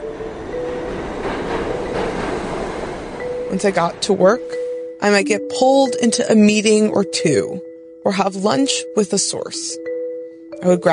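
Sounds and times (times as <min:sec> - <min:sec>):
commuter train running on rails: 0:00.0 - 0:06.5
speech: 0:03.5 - 0:09.9, 0:10.6 - 0:10.9.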